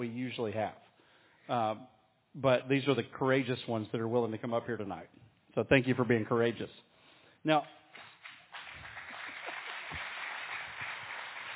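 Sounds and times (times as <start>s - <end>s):
speech: 0.0s - 0.9s, 1.5s - 7.8s
audience clapping: 7.9s - 11.5s.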